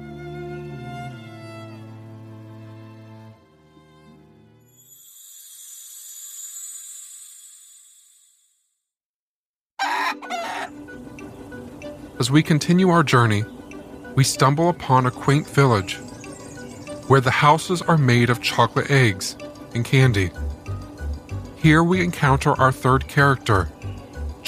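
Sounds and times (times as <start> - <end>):
rooster crowing: 9.8 - 10.8
chickens clucking and squawking: 9.8 - 11.4
speech: 12.2 - 13.6, 14.2 - 16.0, 17.1 - 20.6, 21.6 - 23.8.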